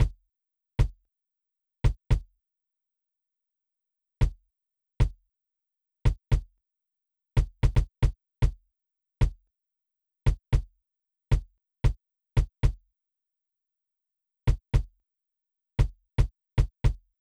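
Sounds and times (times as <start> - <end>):
processed kick drum: 0.0 - 0.2, 1.8 - 2.3, 4.2 - 4.4, 5.0 - 5.2, 6.1 - 6.5, 7.4 - 8.6, 9.2 - 9.4, 10.3 - 10.7, 11.3 - 12.8, 14.5 - 15.0, 15.8 - 17.1.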